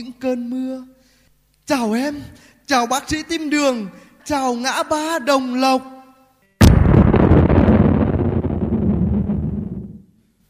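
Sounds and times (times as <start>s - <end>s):
speech: 0.0s - 1.0s, 1.7s - 5.9s
bomb explosion: 6.6s - 10.1s.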